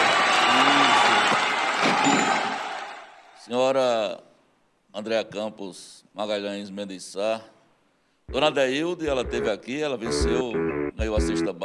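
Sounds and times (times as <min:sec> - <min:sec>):
crowd applauding: 0:00.0 - 0:03.3
speech: 0:03.5 - 0:04.3, 0:05.0 - 0:07.6, 0:08.3 - 0:11.6.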